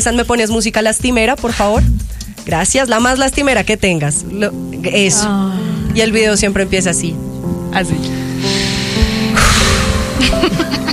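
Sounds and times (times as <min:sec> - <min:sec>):
speech: 0:00.0 - 0:08.6, 0:10.2 - 0:10.9
dramatic opening breath: 0:08.1 - 0:10.4.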